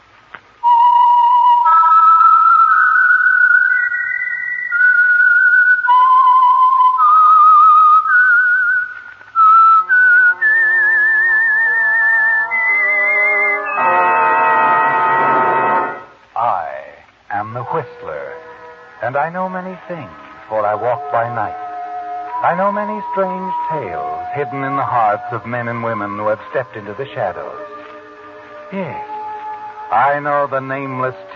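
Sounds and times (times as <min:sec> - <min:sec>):
whistled radio program theme: 0:00.6 - 0:14.2, 0:20.6 - 0:27.8
instrumental music: 0:00.6 - 0:31.3
speech: 0:19.1 - 0:21.6, 0:22.4 - 0:27.7, 0:28.7 - 0:29.1, 0:29.9 - 0:31.3.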